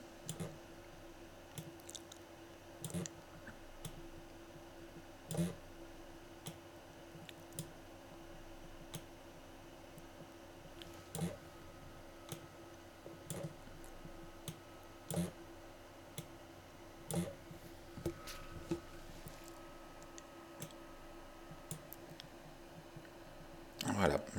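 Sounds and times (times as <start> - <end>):
steady low hiss: 0.0 - 24.3
computer mouse clicking a line segment to bend it into a curve: 0.3 - 0.6, 5.3 - 5.6, 7.3 - 7.7, 13.2 - 13.6, 14.4 - 15.3, 17.1 - 17.4, 21.7 - 22.1.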